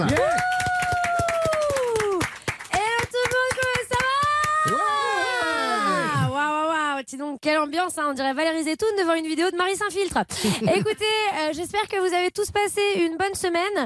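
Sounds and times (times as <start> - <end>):
audience applause: 0.0 - 6.3
speech: 7.4 - 13.8
laughter: 10.4 - 11.2.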